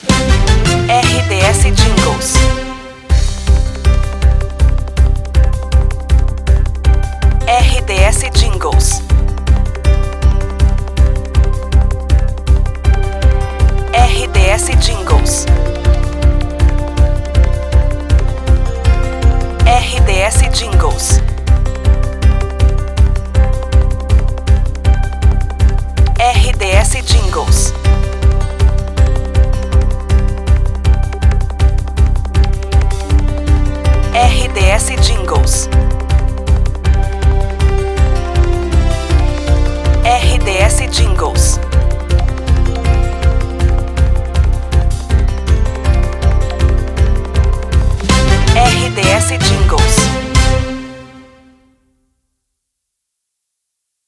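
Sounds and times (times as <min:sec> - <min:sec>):
news theme music: 0:00.0 - 0:51.7.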